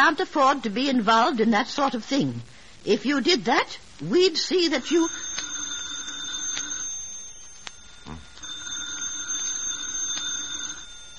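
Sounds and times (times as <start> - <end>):
speech: 0.0 - 5.2
telephone ringing: 4.3 - 11.1.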